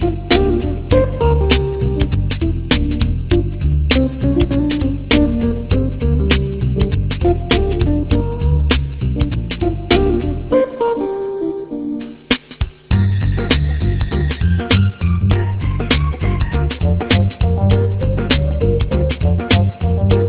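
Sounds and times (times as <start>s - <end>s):
jazz music: 0.0s - 20.2s.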